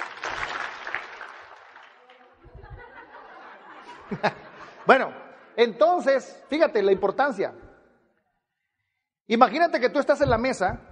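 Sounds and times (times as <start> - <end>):
audience clapping: 0.0 - 2.5
laughter: 2.2 - 7.4
speech: 4.1 - 7.6, 9.3 - 10.9.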